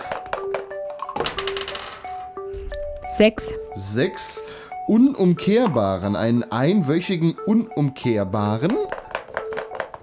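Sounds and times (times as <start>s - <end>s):
dice being rolled: 0.0s - 2.3s, 8.6s - 10.0s
speech: 3.2s - 9.0s.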